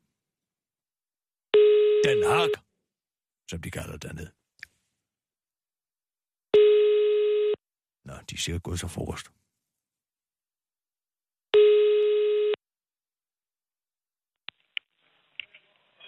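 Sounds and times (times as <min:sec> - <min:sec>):
telephone ringing tone on outgoing call: 0:01.5 - 0:02.6, 0:06.6 - 0:07.6, 0:11.6 - 0:12.6
speech: 0:02.0 - 0:02.6, 0:03.5 - 0:04.4, 0:08.1 - 0:09.4.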